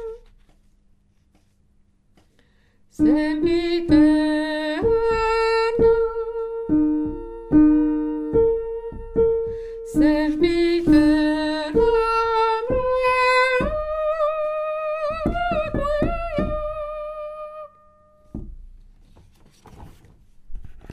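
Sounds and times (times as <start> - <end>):
soprano singing in a chorale: 0.0 - 0.3, 2.9 - 18.3.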